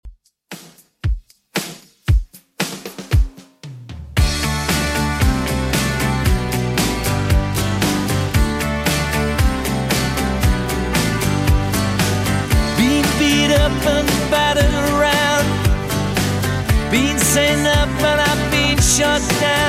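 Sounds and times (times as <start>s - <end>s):
1980s style remix music at 115 bpm: 0.5s - 19.6s.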